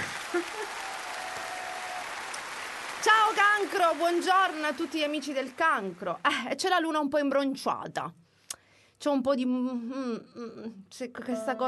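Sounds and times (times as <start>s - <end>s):
short round of clapping hands: 0.0s - 6.1s
speech: 3.6s - 8.2s, 9.0s - 11.6s.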